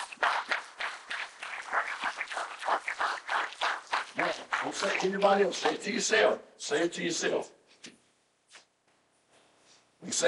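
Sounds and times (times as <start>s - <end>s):
audience hand clapping: 0.0s - 5.8s
speech: 4.6s - 7.6s.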